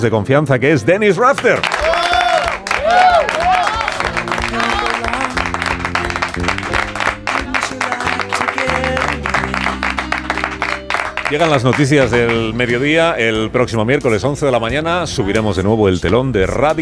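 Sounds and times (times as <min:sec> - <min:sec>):
speech: 0:00.0 - 0:01.9, 0:11.3 - 0:16.8
studio audience applause: 0:01.3 - 0:12.7.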